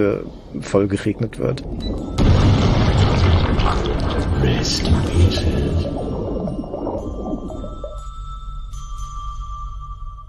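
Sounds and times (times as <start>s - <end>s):
speech: 0.0s - 3.0s, 3.6s - 6.0s
explosion of remotely detonated explosive charges: 2.1s - 7.1s.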